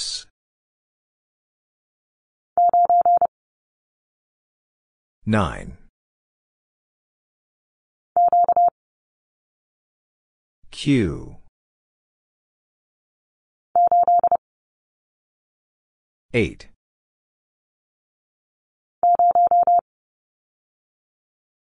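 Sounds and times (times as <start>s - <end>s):
morse code letter q at 30 wpm: 2.6s - 3.3s, 8.2s - 8.7s, 13.8s - 14.4s, 19.0s - 19.8s.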